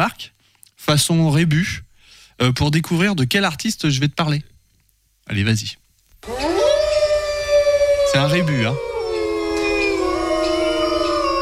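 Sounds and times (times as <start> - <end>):
speech: 0.0 - 1.8, 2.4 - 4.5, 5.3 - 6.6, 8.2 - 8.9
wolves howling: 6.2 - 11.3.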